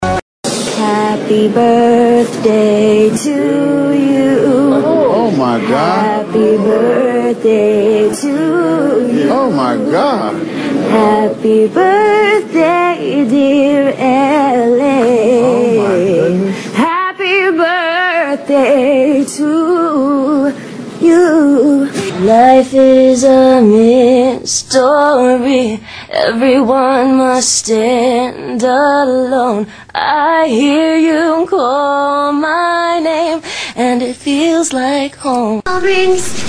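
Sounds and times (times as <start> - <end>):
a cappella singing: 0.0 - 36.4.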